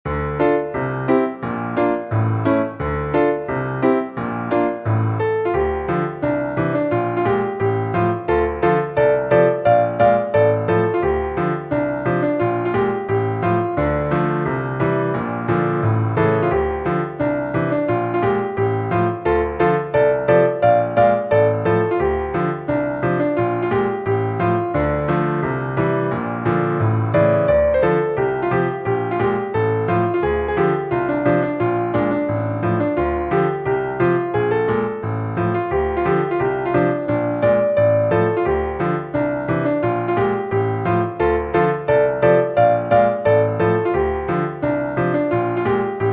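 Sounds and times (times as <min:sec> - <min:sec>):
piano: 0:00.0 - 0:46.1.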